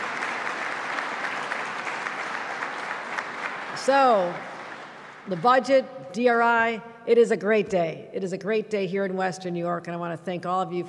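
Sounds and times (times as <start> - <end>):
crowd clapping: 0.0 - 5.7
speech: 3.8 - 4.5, 5.2 - 10.8.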